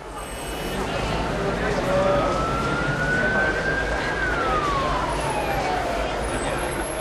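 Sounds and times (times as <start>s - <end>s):
busy city street traffic: 0.0s - 6.9s
siren wailing: 0.7s - 6.9s.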